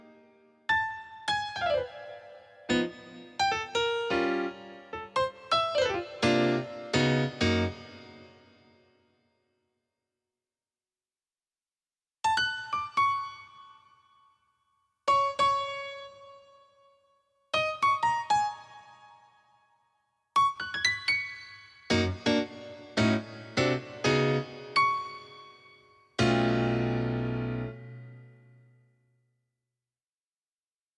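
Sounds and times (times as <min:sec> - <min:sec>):
piano: 0:00.0 - 0:09.1, 0:12.2 - 0:14.3, 0:15.1 - 0:19.8, 0:20.4 - 0:29.0.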